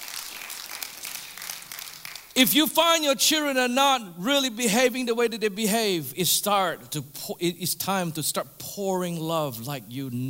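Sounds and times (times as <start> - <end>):
people clapping: 0.0 - 2.4
speech: 2.4 - 10.2.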